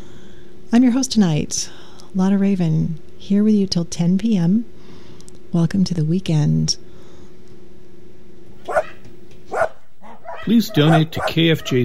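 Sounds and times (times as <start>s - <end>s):
faint hum: 0.0s - 11.8s
speech: 0.7s - 4.8s, 5.5s - 6.8s, 10.4s - 11.8s
dog barking: 8.6s - 11.8s.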